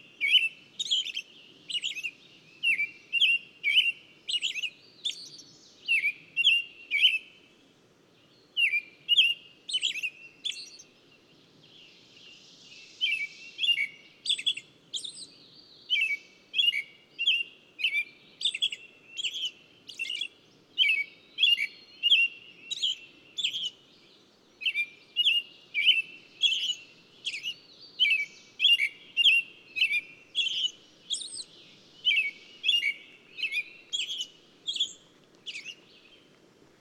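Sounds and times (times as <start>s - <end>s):
bird chirping: 0.0s - 7.3s, 8.3s - 36.4s.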